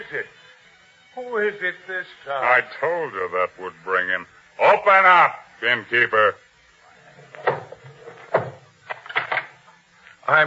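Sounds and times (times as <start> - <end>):
speech: 1.2 - 6.4, 10.3 - 10.4
knocking on an inn door with the handle of a sword: 7.4 - 8.6.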